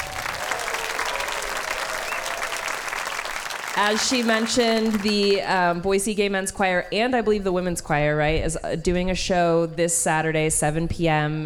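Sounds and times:
audience applause: 0.0s - 5.5s
speech: 3.8s - 11.4s.

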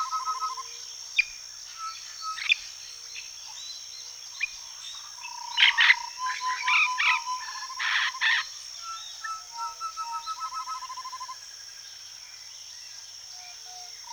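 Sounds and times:
high insect whine in a swampy forest on Venezuela's north coast: 0.0s - 2.8s, 4.9s - 11.8s.

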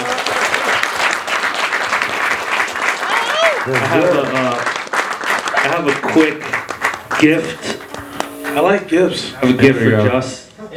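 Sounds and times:
crowd applauding: 0.0s - 9.0s
crowd whooping: 3.0s - 4.7s, 5.4s - 9.2s
speech: 3.7s - 4.7s, 5.7s - 7.9s, 8.5s - 10.7s.

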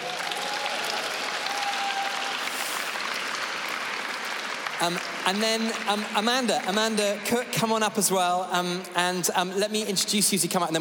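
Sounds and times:
audience clapping: 0.0s - 8.3s
speech: 4.8s - 10.7s.

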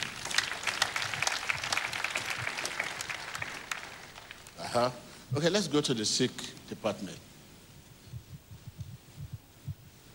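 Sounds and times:
crowd applauding: 0.0s - 4.9s
speech: 4.7s - 7.3s.

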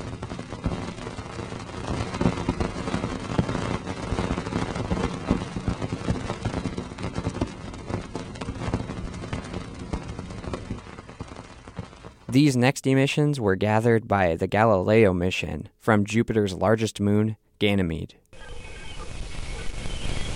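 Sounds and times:
Cassini spacecraft recording of outgoing ring plane crossing, crackling roar: 0.0s - 12.4s, 18.3s - 20.3s
speech: 12.4s - 18.5s.

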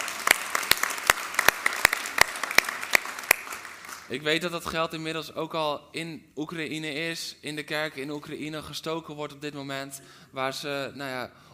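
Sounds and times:
audience applause: 0.0s - 4.1s
speech: 4.1s - 11.5s.

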